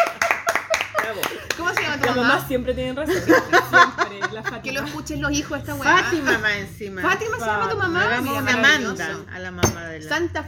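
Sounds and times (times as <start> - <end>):
laughter: 0.0 - 1.8, 3.1 - 5.0
applause: 0.0 - 2.1
speech: 1.2 - 10.4.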